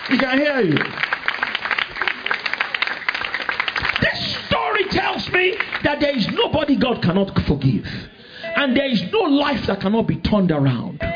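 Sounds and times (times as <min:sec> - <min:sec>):
audience clapping: 0:00.0 - 0:06.9
speech: 0:00.1 - 0:01.1, 0:05.4 - 0:11.1.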